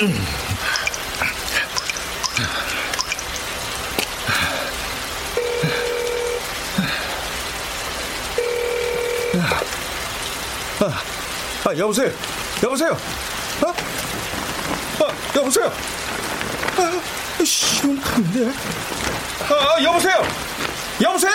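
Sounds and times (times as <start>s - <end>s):
speech: 0.0s - 0.4s, 11.7s - 13.4s, 15.5s - 16.2s, 16.8s - 21.3s
rain hiss: 0.0s - 21.3s
telephone line tone: 5.4s - 6.4s, 8.4s - 9.6s.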